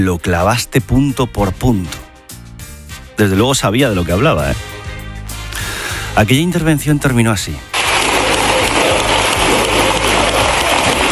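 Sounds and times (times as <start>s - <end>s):
speech: 0.0s - 2.1s, 3.2s - 4.8s, 6.2s - 7.7s
ovation on the socialist benches in parliament: 7.7s - 11.1s.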